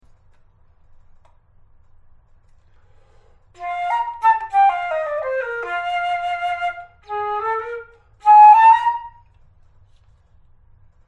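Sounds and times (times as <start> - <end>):
flute: 3.6 - 9.4.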